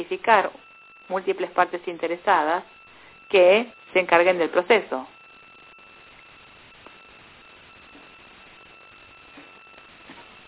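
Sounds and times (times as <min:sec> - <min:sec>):
speech: 0:00.0 - 0:05.1
phone alert tone: 0:00.0 - 0:10.4.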